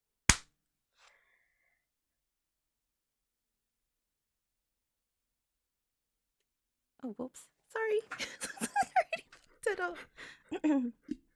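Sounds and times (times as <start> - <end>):
hand clap: 0.3 - 0.5
speech: 7.0 - 9.0, 9.6 - 11.1
laughter: 8.0 - 11.2.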